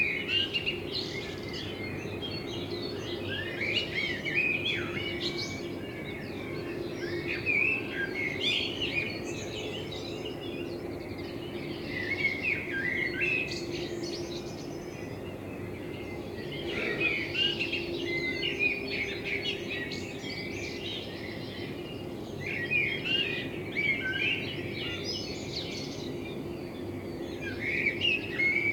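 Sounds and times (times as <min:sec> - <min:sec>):
common blackbird song: 0:00.0 - 0:28.7
low background hum: 0:00.0 - 0:28.7
other birds chirping: 0:16.1 - 0:18.0.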